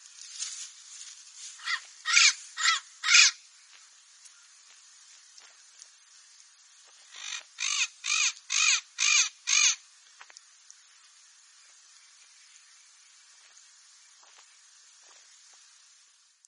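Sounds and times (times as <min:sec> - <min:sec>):
papagaio-verdadeiro parrot singing: 0:01.6 - 0:03.4, 0:07.1 - 0:09.8.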